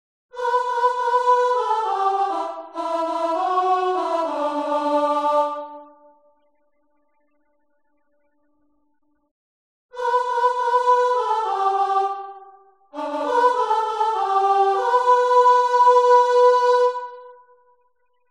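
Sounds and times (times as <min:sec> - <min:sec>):
soprano singing: 0:00.4 - 0:06.2, 0:10.0 - 0:17.5.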